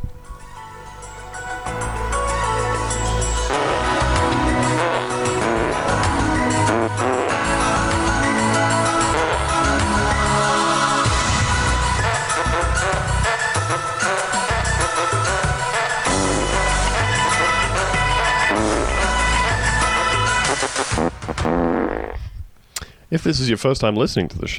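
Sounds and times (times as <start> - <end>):
theme music made of fart sounds: 1.3 - 22.3
speech: 23.3 - 24.5.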